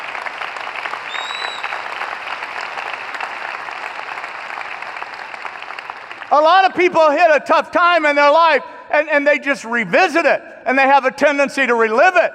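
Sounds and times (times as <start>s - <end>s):
audience applause: 0.0s - 6.4s
speech: 6.3s - 12.3s.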